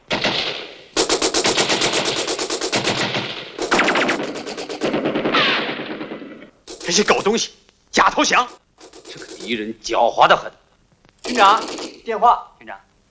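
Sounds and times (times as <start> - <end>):
machine gun fire: 0.0 - 7.5, 8.2 - 9.6, 11.2 - 12.1
speech: 6.9 - 8.6, 9.5 - 10.6, 11.4 - 12.9.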